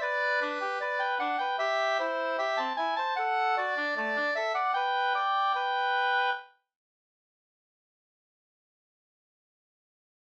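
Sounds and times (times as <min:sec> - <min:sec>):
reinlender folk dance music: 0:00.0 - 0:05.7.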